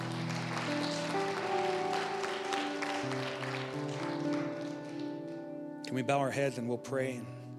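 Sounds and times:
audience applauding: 0:00.0 - 0:05.6
speech: 0:05.9 - 0:07.4.

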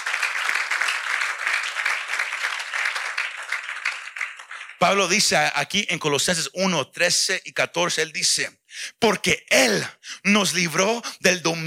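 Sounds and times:
audience applauding: 0:00.0 - 0:05.3
speech: 0:04.8 - 0:11.6.

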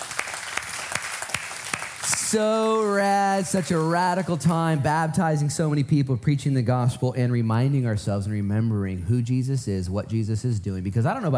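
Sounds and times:
audience clapping: 0:00.0 - 0:04.8
speech: 0:02.3 - 0:11.3.

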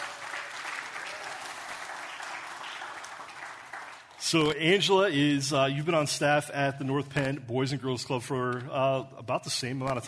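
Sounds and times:
audience applause welcoming a guest at a morning event: 0:00.0 - 0:04.2
speech: 0:04.2 - 0:10.0.

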